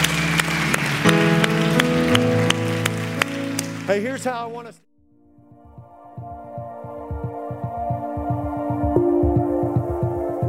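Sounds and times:
audience applause: 0.0 - 4.7
speech: 3.9 - 4.9
sustained musical tones and regular beats: 5.4 - 10.4.

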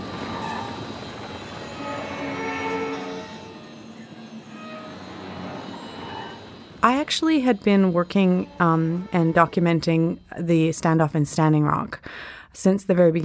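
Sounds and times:
gas flare roaring with dissonant humming: 0.0 - 10.4
speech: 6.8 - 13.2.

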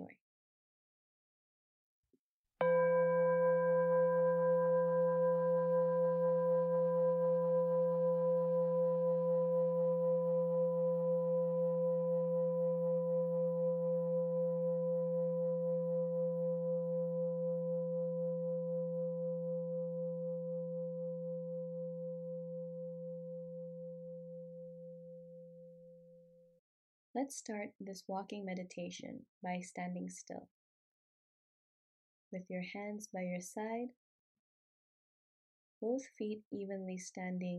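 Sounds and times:
meditation bell ringing: 2.6 - 25.2
speech: 27.2 - 30.6, 32.3 - 34.0, 35.8 - 37.5.

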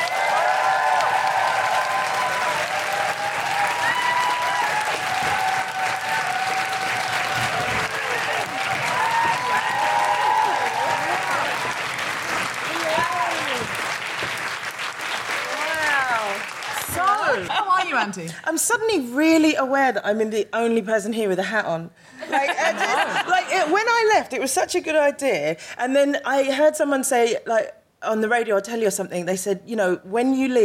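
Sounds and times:
audience applause: 0.0 - 17.8
audience stamping: 6.8 - 14.8
laughter: 16.8 - 18.3, 22.2 - 23.9
speech: 18.1 - 30.6.

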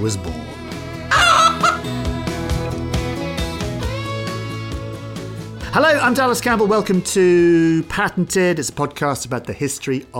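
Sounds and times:
speech: 0.0 - 0.6, 5.8 - 10.1
rhythmic musical backing: 0.0 - 8.7
chicken clucking: 1.1 - 1.9.

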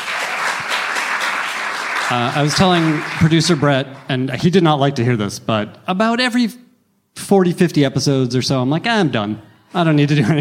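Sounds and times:
audience round of applause: 0.0 - 4.0
speech: 2.1 - 6.6, 7.2 - 10.3.

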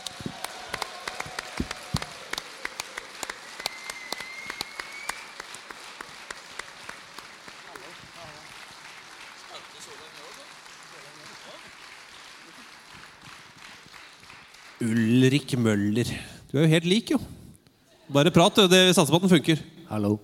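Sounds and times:
audience applause: 0.0 - 15.5
speech: 14.8 - 17.4, 18.1 - 20.2.

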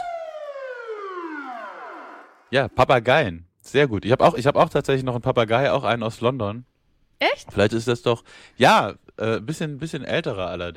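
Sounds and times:
police siren jingle: 0.0 - 2.6
speech: 2.5 - 10.7.

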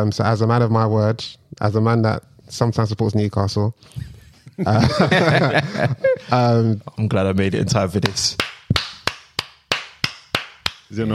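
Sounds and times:
speech: 0.0 - 8.8, 10.9 - 11.1
laughter: 4.3 - 6.5
clap of honour: 7.3 - 10.9.

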